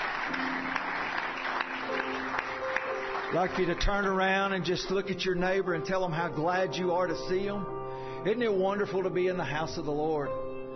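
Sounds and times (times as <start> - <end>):
congregation clapping hands in praise during a church service: 0.0 - 4.6
speech: 3.3 - 10.4.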